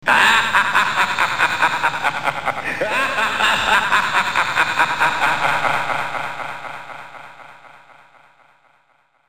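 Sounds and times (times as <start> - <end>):
person laughing: 0.0 - 8.2.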